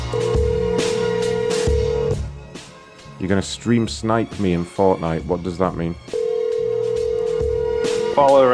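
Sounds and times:
telephone dialing tones placing a call: 0:00.1 - 0:02.2, 0:06.1 - 0:07.9
speech: 0:03.2 - 0:06.1, 0:08.2 - 0:08.5.

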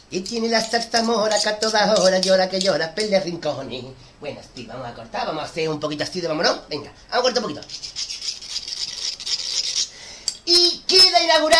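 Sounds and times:
speech: 0:00.1 - 0:08.4, 0:10.5 - 0:11.5
knife being sharpened: 0:00.6 - 0:02.8, 0:07.6 - 0:10.4.

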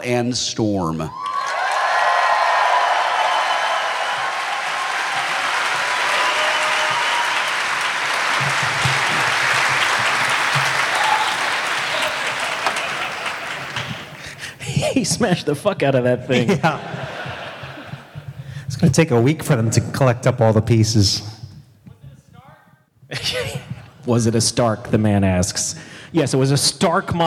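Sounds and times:
speech: 0:00.0 - 0:01.3, 0:15.0 - 0:17.0, 0:18.8 - 0:21.3, 0:24.1 - 0:27.2
audience applause welcoming performers to stage: 0:01.2 - 0:14.6
laughter: 0:07.6 - 0:15.5, 0:16.2 - 0:18.5.

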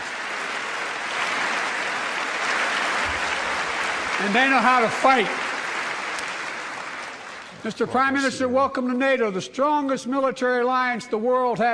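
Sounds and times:
applause from a large audience: 0:00.0 - 0:08.3
speech: 0:04.2 - 0:05.4, 0:07.6 - 0:11.7.

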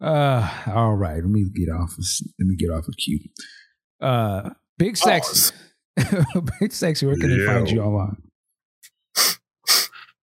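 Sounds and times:
speech: 0:00.0 - 0:08.3
sniffling: 0:09.2 - 0:10.2.

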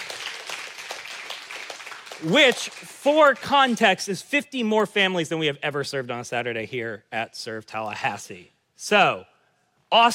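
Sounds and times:
audience applause: 0:00.0 - 0:02.8
speech: 0:02.2 - 0:09.3, 0:09.9 - 0:10.1.

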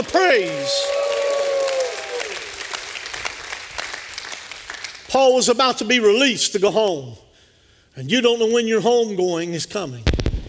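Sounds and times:
speech: 0:00.0 - 0:01.1, 0:05.1 - 0:07.2, 0:08.0 - 0:10.3
audience hand clapping: 0:00.0 - 0:05.2.

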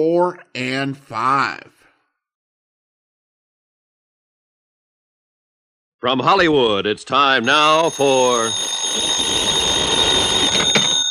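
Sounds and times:
speech: 0:00.0 - 0:01.8, 0:06.0 - 0:09.6
telephone electric bell ringing: 0:07.4 - 0:11.1.

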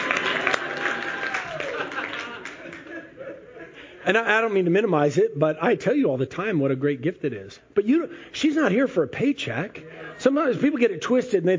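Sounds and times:
audience applause: 0:00.0 - 0:03.0
laughter: 0:00.2 - 0:04.0
speech: 0:04.0 - 0:11.5.

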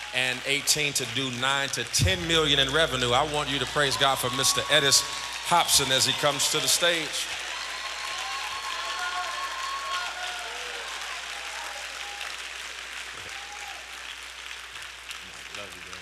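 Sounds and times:
excited cheering: 0:00.0 - 0:14.8
loud sustained applause: 0:00.0 - 0:16.0
speech: 0:00.1 - 0:07.4
high drawn-out screams and whoops: 0:03.5 - 0:12.5, 0:13.2 - 0:14.1.

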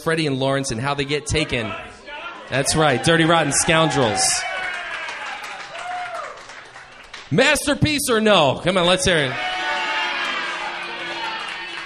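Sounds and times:
speech: 0:00.0 - 0:01.9, 0:02.5 - 0:04.5, 0:07.3 - 0:09.5
audience booing: 0:01.6 - 0:06.4, 0:09.2 - 0:11.8.

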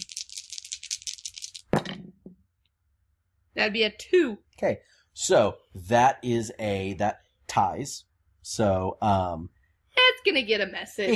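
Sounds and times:
dice rattling: 0:00.0 - 0:01.8
speech: 0:03.6 - 0:09.6, 0:10.2 - 0:11.1.

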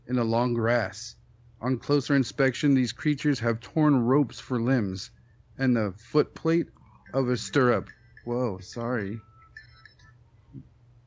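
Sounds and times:
steady low hum: 0:00.0 - 0:11.0
speech: 0:00.1 - 0:09.3
phone alarm tones: 0:06.8 - 0:10.4.

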